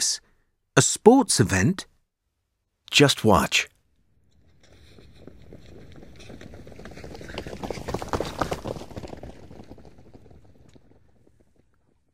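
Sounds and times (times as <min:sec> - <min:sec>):
speech: 0:00.8 - 0:01.9, 0:02.9 - 0:03.7
running footsteps of a man in sports clothes through a gallery: 0:04.2 - 0:12.1.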